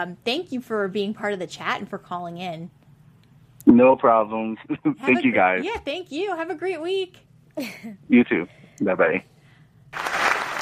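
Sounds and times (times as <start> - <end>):
speech: 0.0 - 2.8, 3.7 - 9.3
applause sound effect: 9.9 - 10.6.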